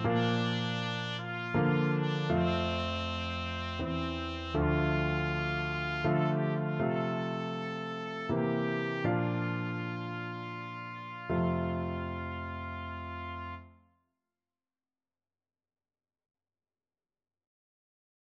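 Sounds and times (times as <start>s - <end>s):
trumpet duet: 0.0s - 13.7s.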